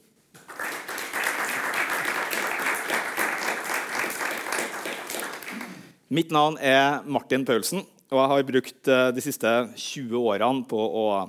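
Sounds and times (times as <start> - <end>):
audience applause: 0.4 - 5.9
speech: 6.1 - 11.2.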